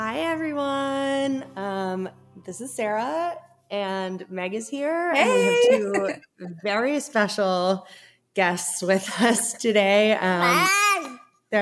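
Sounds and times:
speech: 0.2 - 10.9
laughter: 5.2 - 6.2
baby babbling: 10.4 - 11.3.

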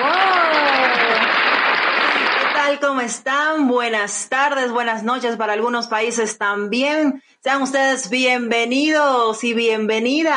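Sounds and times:
crowd applause: 0.0 - 2.8
speech: 2.9 - 10.3.

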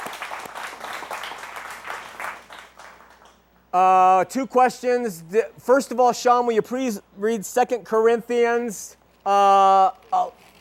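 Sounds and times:
audience applause: 0.0 - 3.4
speech: 3.7 - 10.5.

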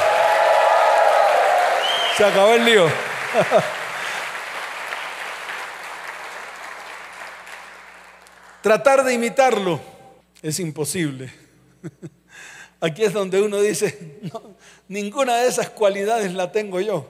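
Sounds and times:
audience cheering: 0.0 - 7.8
audience applauding: 0.0 - 8.7
speech: 2.2 - 3.8, 8.6 - 12.2, 12.8 - 17.0
laughter: 3.1 - 4.2.

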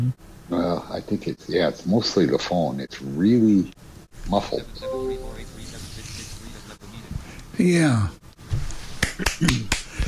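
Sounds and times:
speech: 0.1 - 5.0, 7.6 - 8.2, 9.2 - 9.8
hand clapping: 9.0 - 10.0.

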